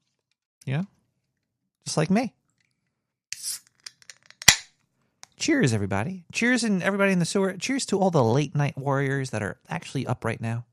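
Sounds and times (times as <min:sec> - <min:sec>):
speech: 0:00.7 - 0:01.0, 0:01.8 - 0:02.4, 0:05.4 - 0:10.7
beer can being cracked open: 0:03.4 - 0:04.7.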